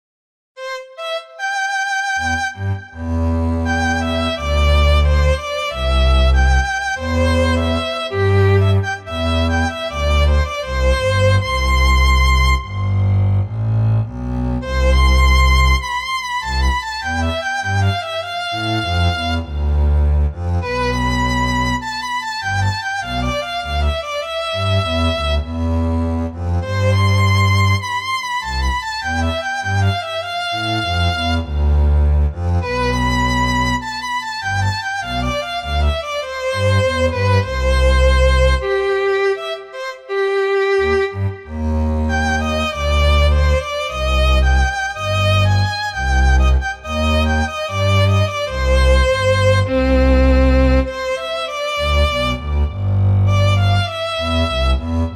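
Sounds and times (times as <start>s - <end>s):
violin: 0.6s - 55.1s
double bass: 2.3s - 39.4s, 40.1s - 55.1s.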